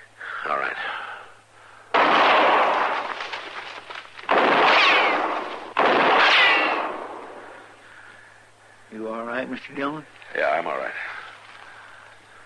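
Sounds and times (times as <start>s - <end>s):
speech: 0.4s - 1.1s, 9.5s - 11.1s
gunshots in a radio western drama: 1.9s - 3.6s, 4.2s - 7.7s.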